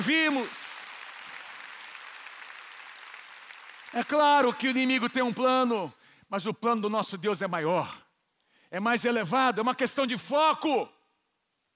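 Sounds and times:
speech: 0:00.0 - 0:00.6, 0:03.9 - 0:08.0, 0:08.7 - 0:11.0
audience applause: 0:00.0 - 0:04.8.

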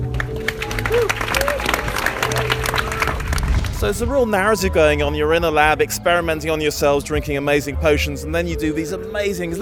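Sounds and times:
audience applause: 0:00.1 - 0:04.0
speech: 0:03.8 - 0:09.5.

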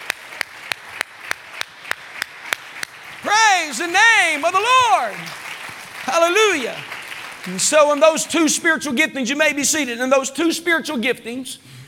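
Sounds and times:
standing crowd clapping hands in unison: 0:00.0 - 0:08.8
speech: 0:03.2 - 0:05.4, 0:06.1 - 0:11.8.

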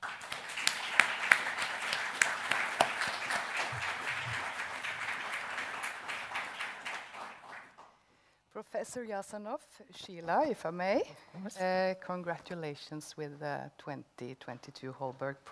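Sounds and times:
round of applause: 0:00.0 - 0:07.9
speech: 0:08.8 - 0:15.5.

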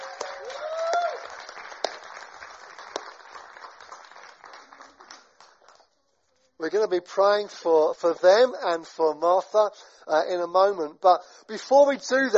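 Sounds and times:
audience applause: 0:00.0 - 0:05.8
speech: 0:06.6 - 0:12.3.

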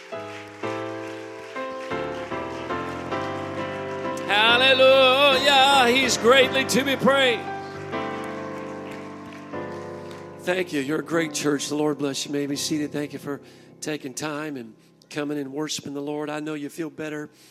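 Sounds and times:
audience clapping hands: 0:00.0 - 0:11.6
speech: 0:05.9 - 0:07.6, 0:10.4 - 0:17.4.

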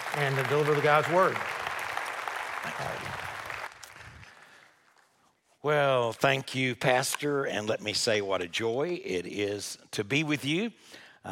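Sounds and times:
audience round of applause: 0:00.0 - 0:04.7
speech: 0:00.2 - 0:01.6, 0:02.6 - 0:03.3, 0:05.6 - 0:11.3.

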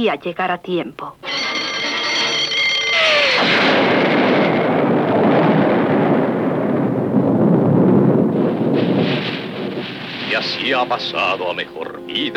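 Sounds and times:
speech: 0:00.0 - 0:01.6, 0:10.4 - 0:12.3
falling whistle: 0:01.2 - 0:05.0
bomb explosion: 0:02.5 - 0:11.7.

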